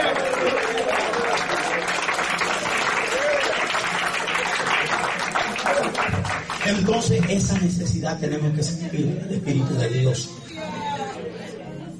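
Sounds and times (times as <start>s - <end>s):
audience clapping: 0.0s - 7.9s
speech: 6.7s - 10.6s.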